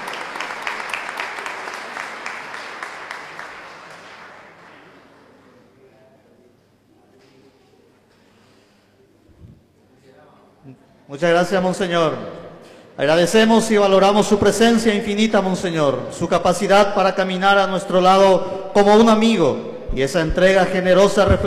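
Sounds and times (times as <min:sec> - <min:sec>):
audience applause: 0:00.0 - 0:05.5
speech: 0:11.1 - 0:12.4, 0:13.0 - 0:21.4.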